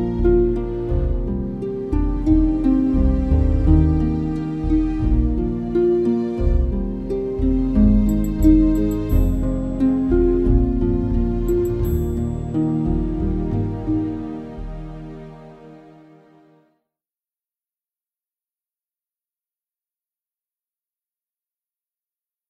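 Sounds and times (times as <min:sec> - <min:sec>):
musical accompaniment: 0:00.0 - 0:16.7.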